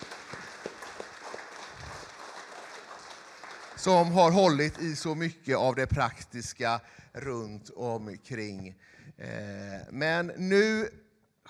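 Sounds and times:
audience applause: 0.0 - 5.2
speech: 3.8 - 11.4.

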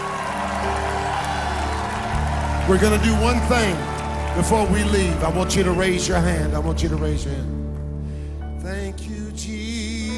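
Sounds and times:
audience shouting: 0.0 - 5.4
audience clapping: 0.0 - 8.1
speech: 2.7 - 7.6, 8.6 - 10.1.

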